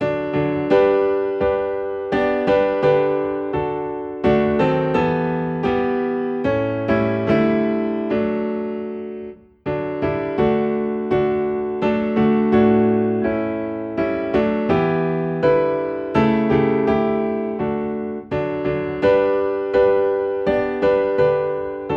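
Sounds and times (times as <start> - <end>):
piano piece in D: 0.0 - 21.9.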